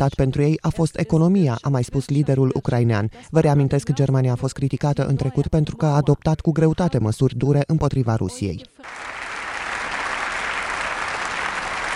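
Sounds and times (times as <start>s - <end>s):
speech: 0.0s - 9.2s
standing ovation applause in parliament: 8.8s - 11.9s.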